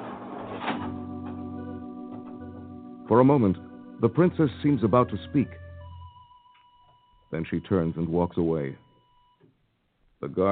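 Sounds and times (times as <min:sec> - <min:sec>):
big heavy door swinging slowly open: 0:00.0 - 0:02.4
speech: 0:03.1 - 0:05.6, 0:07.3 - 0:08.8, 0:10.2 - 0:10.5.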